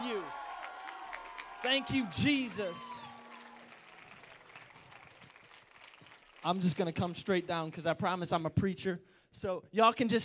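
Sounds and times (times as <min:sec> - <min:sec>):
audience applause: 0:00.0 - 0:07.0
speech: 0:01.6 - 0:03.0, 0:06.4 - 0:10.2.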